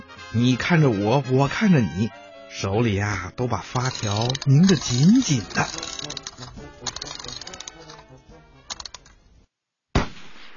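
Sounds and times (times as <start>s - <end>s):
speech: 0.3s - 6.0s
busy clattering: 3.7s - 9.2s
gunshot signaling race start: 9.9s - 10.5s.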